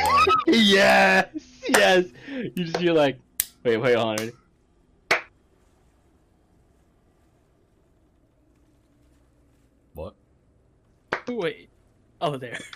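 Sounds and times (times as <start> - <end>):
laughter: 0.0 - 2.2
speech: 0.5 - 4.4, 11.3 - 12.7
low steady rumble: 1.1 - 12.7
slow hand claps: 5.1 - 5.3.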